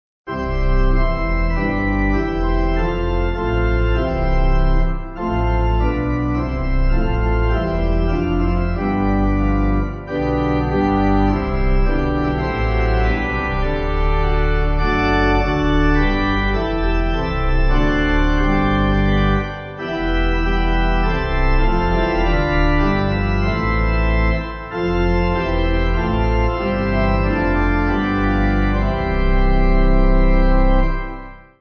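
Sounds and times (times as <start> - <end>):
pipe organ backing: 0.3 - 31.5.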